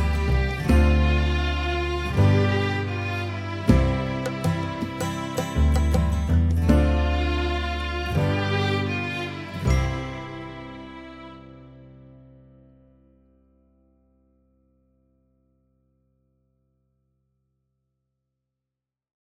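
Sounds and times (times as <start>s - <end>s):
instrumental music: 0.0s - 12.5s.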